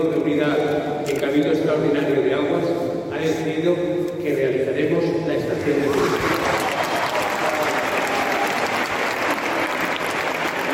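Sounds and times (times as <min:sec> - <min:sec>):
speech: 0:00.0 - 0:06.7
emotional applause: 0:05.9 - 0:10.7.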